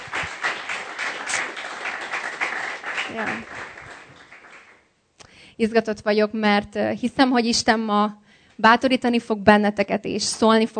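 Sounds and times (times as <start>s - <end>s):
audience applause: 0.0s - 4.8s
speech: 3.1s - 3.6s, 5.6s - 10.7s.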